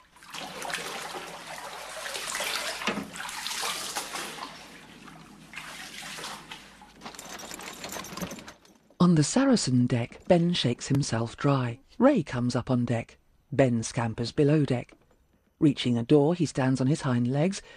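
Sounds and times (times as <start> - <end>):
person wading through ankle-deep water below deck on a flooded ship: 0.0 - 7.0
speech: 9.1 - 15.0, 15.6 - 17.7.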